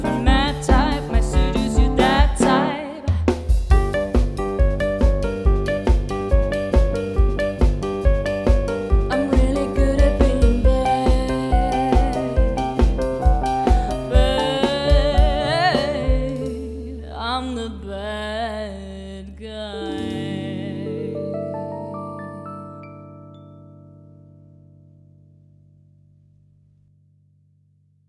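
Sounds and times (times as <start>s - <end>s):
party band singing: 0.0s - 3.3s, 9.1s - 22.9s
party band drums: 0.0s - 17.0s, 19.9s - 20.8s
party band piano: 0.0s - 26.6s.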